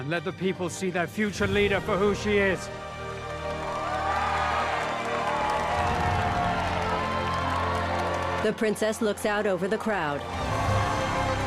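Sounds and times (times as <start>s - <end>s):
speech: 0.0s - 2.9s, 8.4s - 10.4s
crowd applauding: 2.2s - 11.4s.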